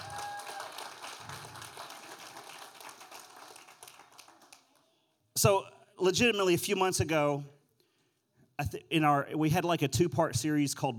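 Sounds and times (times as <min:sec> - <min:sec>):
audience hand clapping: 0:00.0 - 0:05.0
speech: 0:05.4 - 0:07.6, 0:08.6 - 0:10.9.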